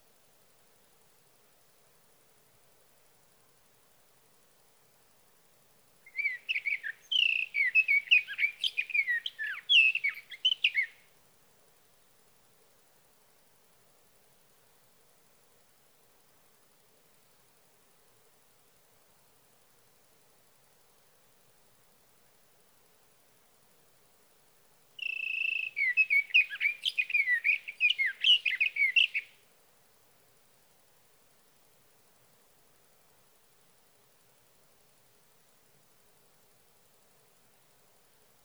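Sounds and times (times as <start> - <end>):
sage thrasher: 6.1 - 11.0, 25.0 - 29.3.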